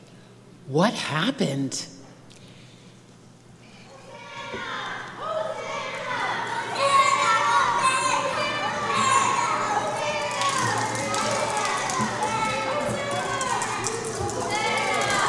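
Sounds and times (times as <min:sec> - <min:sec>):
speech: 0:00.7 - 0:02.0
crowd shouting: 0:04.1 - 0:15.2.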